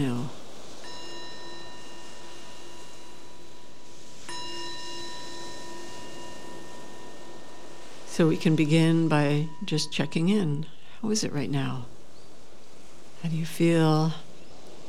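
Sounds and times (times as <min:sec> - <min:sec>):
meditation bell: 0:00.0 - 0:14.8
speech: 0:08.2 - 0:11.9, 0:13.2 - 0:14.2.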